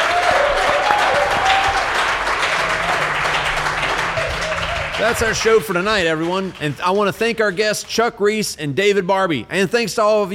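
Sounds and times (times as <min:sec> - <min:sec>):
audience applause: 0:00.0 - 0:07.9
speech: 0:05.0 - 0:10.3.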